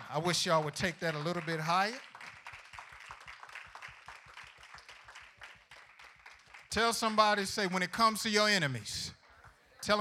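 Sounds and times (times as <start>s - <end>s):
crowd clapping: 0.0s - 7.4s
speech: 0.1s - 2.1s, 6.8s - 9.2s.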